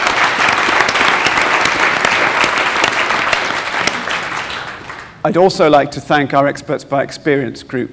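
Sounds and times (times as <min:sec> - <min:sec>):
audience applause: 0:00.0 - 0:05.2
speech: 0:05.2 - 0:07.9.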